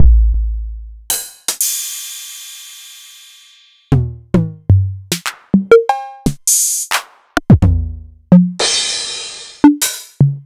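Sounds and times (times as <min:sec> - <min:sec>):
Novation Drumstation drum machine: 0:03.9 - 0:10.4.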